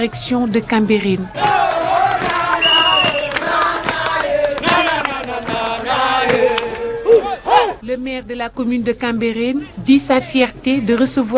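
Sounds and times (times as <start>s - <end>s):
speech: 0.0s - 2.3s, 7.9s - 11.3s
large festive crowd cheering and chanting to welcome the Olympic torch: 1.0s - 7.8s
high whistle-like tones: 2.5s - 3.4s.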